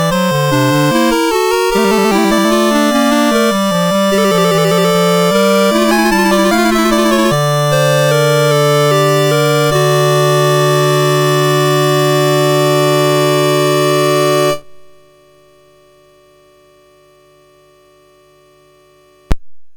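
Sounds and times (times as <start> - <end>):
fugue on a sound chip: 0.0 - 14.6.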